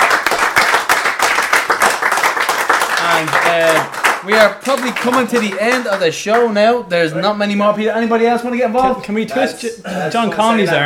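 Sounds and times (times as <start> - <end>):
crowd round of applause: 0.0 - 6.0
speech: 3.2 - 10.8.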